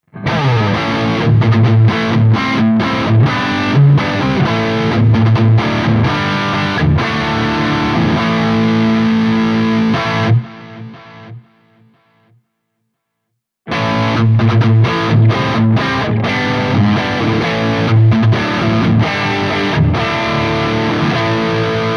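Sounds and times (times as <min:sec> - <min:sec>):
heavy lead riff: 0:00.1 - 0:11.5, 0:13.7 - 0:21.9.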